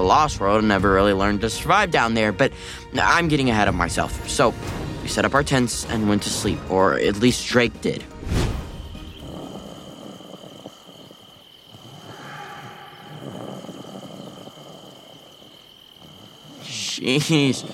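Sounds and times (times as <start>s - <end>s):
speech: 0.1s - 8.4s, 17.0s - 17.7s
loud snoring: 8.7s - 17.7s.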